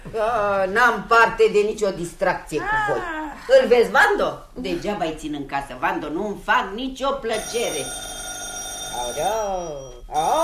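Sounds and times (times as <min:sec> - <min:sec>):
speech: 0:00.1 - 0:08.1, 0:09.0 - 0:10.4
old household telephone ringing: 0:07.3 - 0:10.4.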